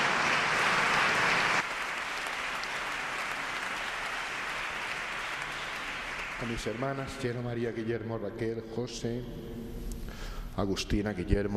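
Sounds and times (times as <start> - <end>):
audience applause: 0.0 - 7.4
speech: 6.4 - 9.9, 10.6 - 11.5.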